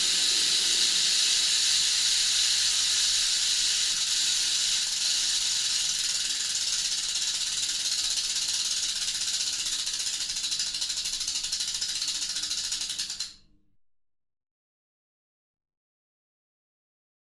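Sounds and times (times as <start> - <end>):
rattlesnake rattling: 0.0 - 13.4.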